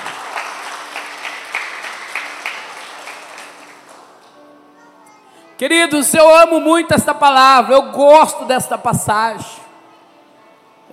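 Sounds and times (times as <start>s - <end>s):
audience applause: 0.0s - 4.3s
speech: 5.6s - 9.6s.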